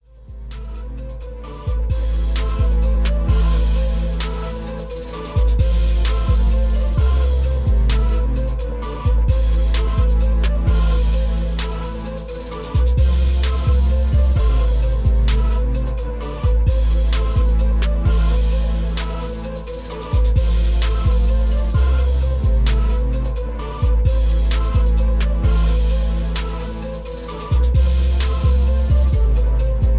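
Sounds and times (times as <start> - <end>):
trap beat: 0.1 - 29.9.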